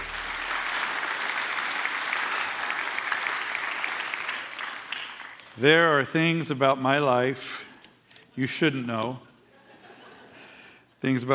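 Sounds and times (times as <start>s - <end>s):
church congregation applauding to welcome the pastor: 0.0s - 5.9s
speech: 5.6s - 7.7s, 8.4s - 9.3s, 11.0s - 11.3s
laughter: 9.5s - 10.5s.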